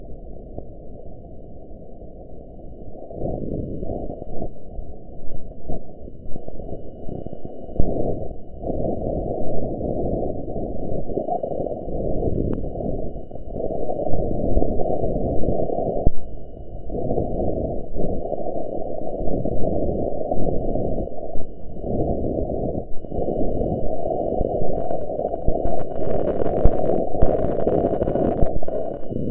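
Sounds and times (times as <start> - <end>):
Opportunity rover accelerometer measurements converted into sounds: 0.0 - 29.2.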